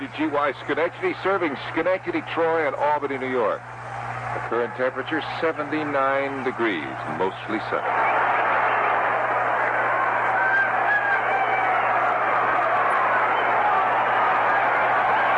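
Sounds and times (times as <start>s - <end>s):
speech: 0.2s - 3.8s, 4.4s - 8.5s
baseball stadium crowd cheering wildly: 3.7s - 15.3s.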